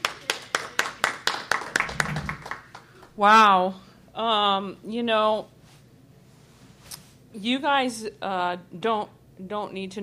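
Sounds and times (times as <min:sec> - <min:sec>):
hand clapping: 0:00.0 - 0:03.1
speech: 0:03.2 - 0:05.6, 0:07.4 - 0:10.0.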